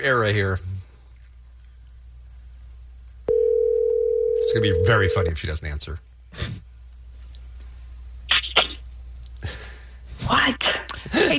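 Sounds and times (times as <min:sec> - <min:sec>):
speech: 0:00.0 - 0:00.7, 0:04.5 - 0:06.6, 0:10.3 - 0:11.3
steady telephone line tone as a call is dialed: 0:03.3 - 0:05.4.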